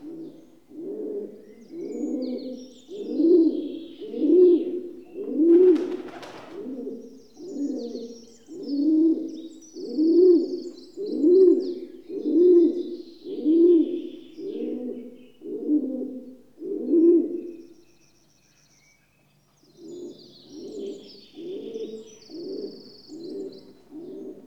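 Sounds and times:
rock dove Columba livia cooing: 0.0 - 17.6, 19.8 - 24.4.

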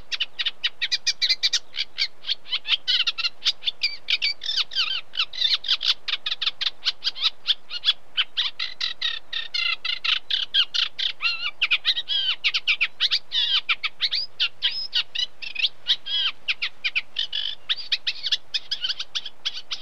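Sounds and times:
unmated male Eurasian reed warbler singing: 0.0 - 19.7.

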